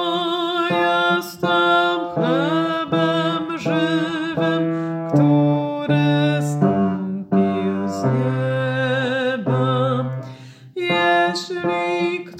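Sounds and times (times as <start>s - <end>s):
bass voice singing: 0.0s - 12.3s.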